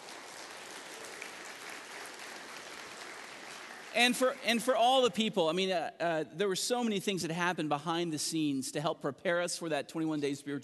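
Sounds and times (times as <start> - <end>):
audience hand clapping: 0.0 - 5.3
speech: 3.9 - 10.6.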